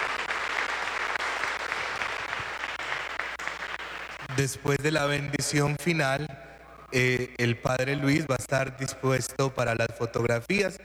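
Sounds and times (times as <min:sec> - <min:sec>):
audience applause: 0:00.0 - 0:04.4
speech: 0:04.4 - 0:10.8.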